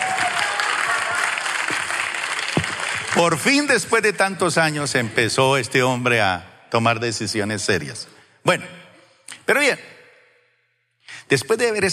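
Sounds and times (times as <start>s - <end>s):
audience applause: 0.0s - 3.9s
speech: 3.2s - 8.8s, 9.5s - 9.9s, 11.3s - 11.9s.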